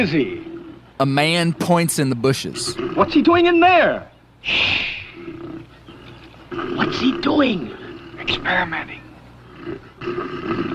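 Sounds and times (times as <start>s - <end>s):
bear growling: 0.0s - 1.0s, 5.1s - 10.7s
speech: 0.0s - 4.9s, 6.6s - 9.0s, 9.6s - 10.7s.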